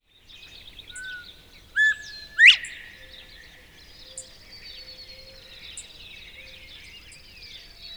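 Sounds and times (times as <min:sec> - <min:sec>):
Northern bobwhite whistled call: 0:01.8 - 0:03.5.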